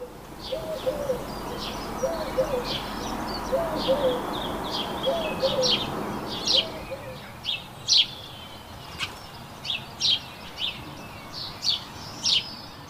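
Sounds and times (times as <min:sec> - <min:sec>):
low cooing calls: 0:00.0 - 0:07.6
birds chirping and trilling outdoors: 0:00.0 - 0:12.8
steady hiss: 0:00.0 - 0:12.8.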